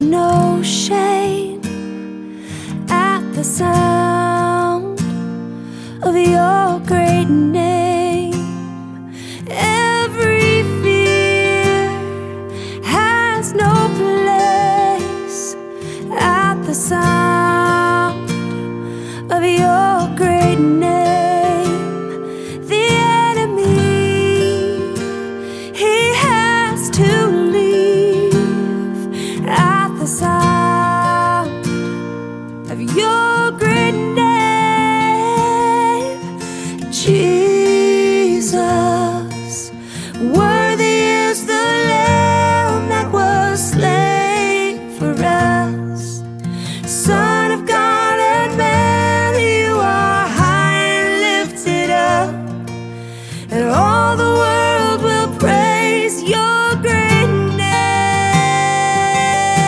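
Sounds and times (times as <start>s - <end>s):
acoustic music: 0.0s - 59.6s.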